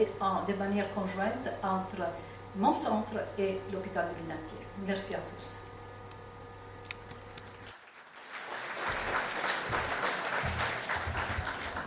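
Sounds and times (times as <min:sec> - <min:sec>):
speech: 0:00.0 - 0:05.7
audience applause: 0:07.7 - 0:11.8.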